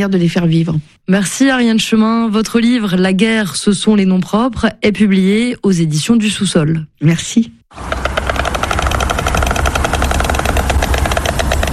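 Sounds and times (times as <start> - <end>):
speech: 0.0 - 8.1
white stork bill clattering: 7.8 - 11.7.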